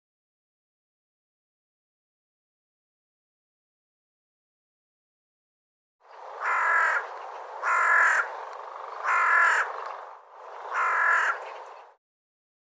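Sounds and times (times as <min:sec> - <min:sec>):
bird giving harsh raspy cawing calls: 0:06.1 - 0:12.0.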